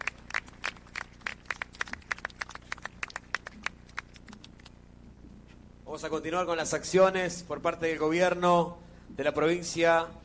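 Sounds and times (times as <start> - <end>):
audience applause: 0.0 - 4.2
speech: 5.9 - 10.2.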